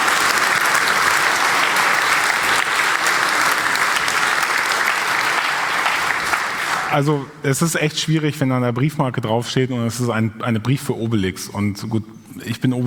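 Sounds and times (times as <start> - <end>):
audience applause: 0.0 - 7.2
speech: 6.9 - 12.8.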